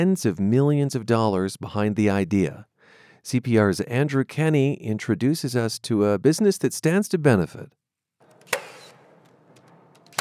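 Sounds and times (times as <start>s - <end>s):
speech: 0.0s - 7.8s
nail gun firing in a home-building factory: 8.3s - 10.1s.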